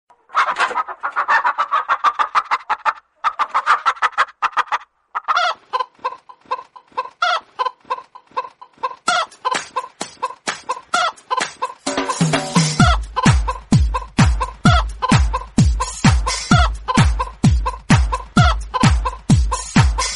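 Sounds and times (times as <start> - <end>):
chicken clucking: 0.1 - 19.3.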